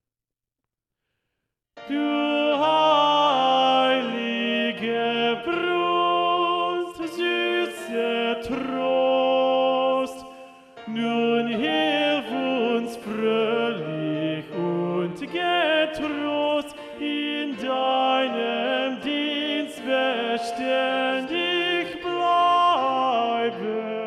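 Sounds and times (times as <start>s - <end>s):
tenor singing a motet: 1.8s - 24.0s.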